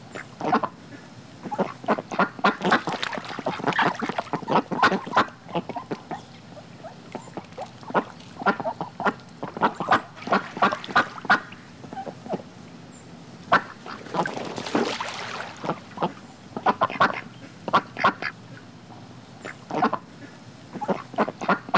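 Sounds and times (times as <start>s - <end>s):
ducks quacking in a flock: 0.1s - 12.5s, 13.5s - 18.4s, 19.4s - 21.7s
water splashing and flapping: 2.1s - 6.2s, 6.8s - 11.6s, 13.5s - 16.2s.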